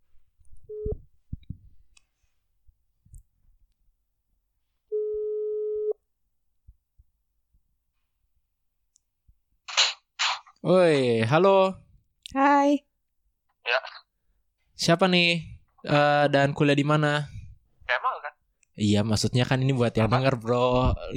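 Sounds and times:
phone line ringback tone: 0:00.7 - 0:01.0, 0:04.9 - 0:06.0
speech: 0:10.6 - 0:12.9, 0:14.8 - 0:21.1.

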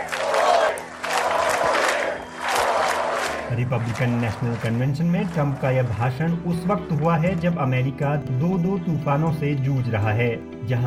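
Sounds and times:
crowd chanting slogans: 0:00.0 - 0:04.7
supporters clapping: 0:00.0 - 0:07.9
speech: 0:03.5 - 0:10.8.

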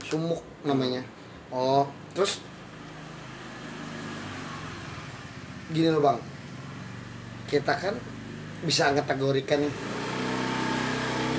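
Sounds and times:
speech: 0:00.1 - 0:02.5, 0:05.7 - 0:06.3, 0:07.5 - 0:09.9
motorcycle passing by: 0:02.5 - 0:11.3.

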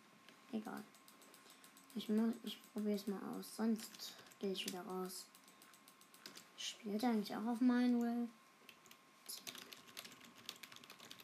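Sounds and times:
speech: 0:00.5 - 0:01.0, 0:02.0 - 0:05.4, 0:06.6 - 0:08.4
typing on a computer keyboard: 0:00.7 - 0:06.5, 0:08.7 - 0:11.2.

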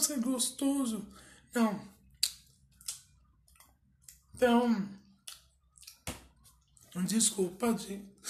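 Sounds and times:
speech: 0:00.1 - 0:02.0, 0:04.4 - 0:05.0, 0:07.0 - 0:08.2
chewing food: 0:02.0 - 0:04.4, 0:05.0 - 0:07.3.

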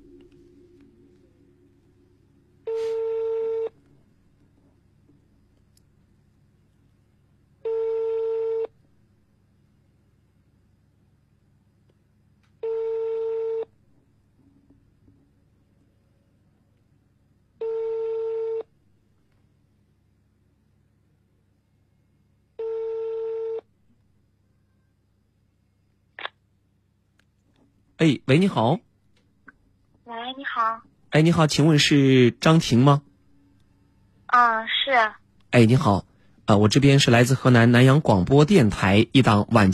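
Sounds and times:
faint low hum: 0:00.0 - 0:39.7
telephone ringback tone: 0:02.6 - 0:03.8, 0:07.6 - 0:08.7, 0:12.6 - 0:13.7, 0:17.6 - 0:18.7, 0:22.6 - 0:23.6
speech: 0:28.0 - 0:28.9, 0:30.4 - 0:33.1, 0:34.3 - 0:39.7.

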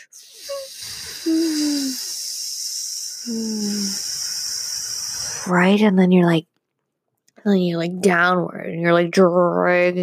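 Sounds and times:
steady hiss: 0:00.0 - 0:05.7
voice imitating slow air release from a balloon: 0:00.2 - 0:05.5
speech: 0:03.3 - 0:04.0, 0:05.5 - 0:06.5, 0:07.4 - 0:10.0.

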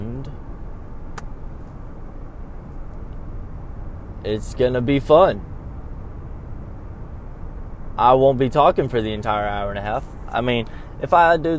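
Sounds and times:
car interior road and engine rumble while driving: 0:00.0 - 0:11.5
speech: 0:04.2 - 0:05.5, 0:08.0 - 0:11.5.

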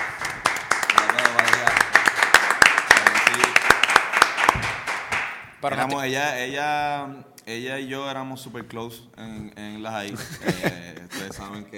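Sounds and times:
small group clapping: 0:00.0 - 0:05.6
speech: 0:05.6 - 0:11.7
laughter: 0:10.1 - 0:11.6.

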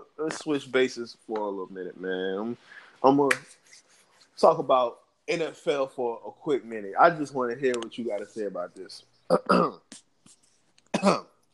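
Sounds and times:
speech: 0:00.2 - 0:03.8, 0:04.4 - 0:10.0, 0:11.0 - 0:11.3
man clearing throat: 0:09.3 - 0:09.9, 0:10.9 - 0:11.4.

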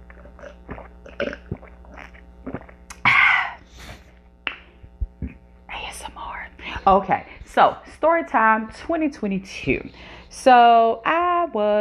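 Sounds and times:
person drinking water: 0:00.0 - 0:05.6
speech: 0:06.9 - 0:11.7.

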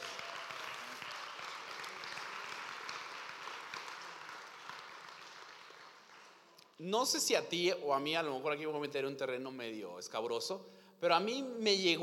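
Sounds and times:
applause: 0:00.0 - 0:06.8
speech: 0:06.8 - 0:12.0.

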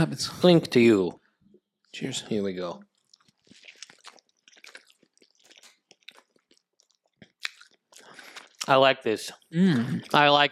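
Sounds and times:
speech: 0:00.0 - 0:01.2, 0:02.0 - 0:02.9, 0:08.7 - 0:10.5
biting and chewing a sandwich: 0:02.8 - 0:08.7.

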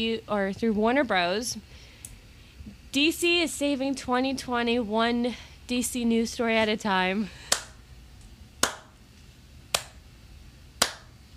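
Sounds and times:
speech: 0:00.0 - 0:01.9, 0:02.9 - 0:07.4
slow clap: 0:07.5 - 0:07.8, 0:08.6 - 0:09.0, 0:09.7 - 0:10.0, 0:10.8 - 0:11.1.

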